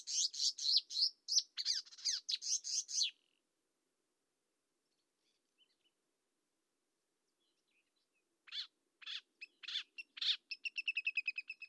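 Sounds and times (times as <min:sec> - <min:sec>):
marsh warbler Acrocephalus palustris palustris singing: 0:00.0 - 0:03.3, 0:08.5 - 0:11.6.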